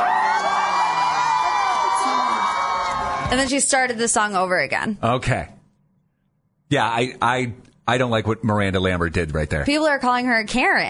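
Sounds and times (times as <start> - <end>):
whoops and shouts: 0.0 - 3.4
concert crowd cheering: 0.0 - 3.8
speech: 3.3 - 5.6, 6.7 - 10.8.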